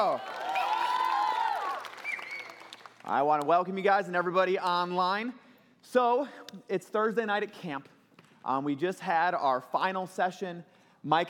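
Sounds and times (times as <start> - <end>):
high whoops and cheers: 0.0 - 2.8
applause for a camp speaker at a Thursday night camp session: 0.0 - 3.8
speech: 3.1 - 11.2.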